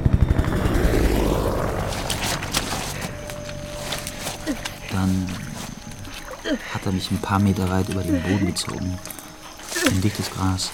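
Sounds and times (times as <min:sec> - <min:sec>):
helicopter flying overhead with thumping rotor: 0:00.0 - 0:06.1
speech: 0:06.8 - 0:09.2, 0:09.8 - 0:10.7.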